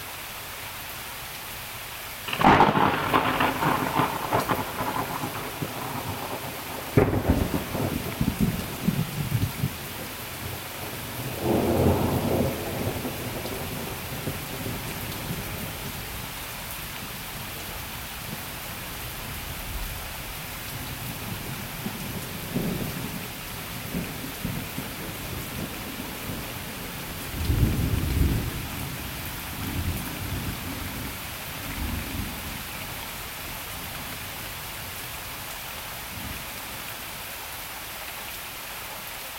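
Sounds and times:
thunderstorm: 2.3 - 16.2, 20.7 - 33.0.

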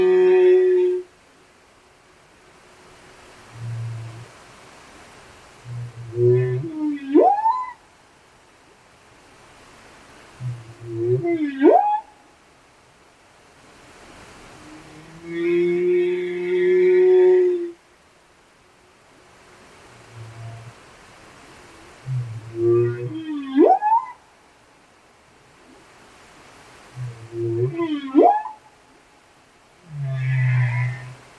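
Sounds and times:
humpback whales singing off Westman Islands: 0.0 - 1.1, 5.6 - 7.8, 10.4 - 12.1, 14.6 - 17.8, 21.7 - 24.3, 26.9 - 28.7.

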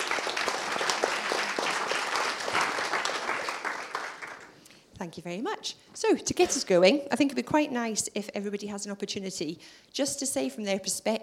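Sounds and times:
audience applause greeting panellists at a Glasgow industry discussion: 0.0 - 4.6
speech: 5.0 - 11.2.

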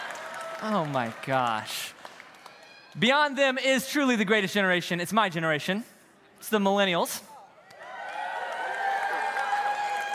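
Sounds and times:
cheering: 0.0 - 3.2, 7.6 - 10.1
audience clapping: 0.0 - 3.3, 7.7 - 10.1
speech: 0.6 - 2.0, 2.9 - 7.3.

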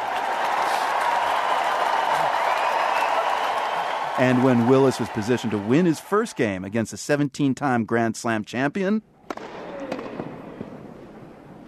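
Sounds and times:
large tennis crowd applauding at center court: 0.0 - 6.6
faint murmur of cheering: 0.0 - 6.7
speech: 4.2 - 9.4.

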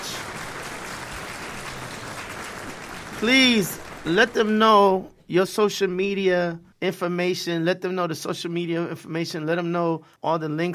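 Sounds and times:
audience applause: 0.0 - 5.0
speech: 3.2 - 10.7.

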